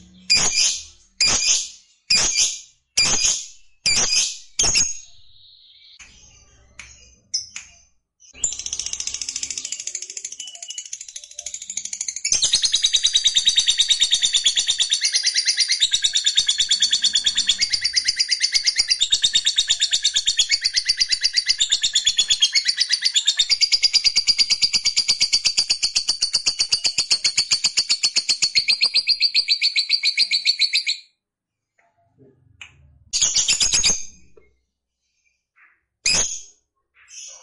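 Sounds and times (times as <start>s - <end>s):
lovebird squawks and twittering: 0.1s - 5.1s, 8.4s - 31.0s, 35.6s - 37.4s.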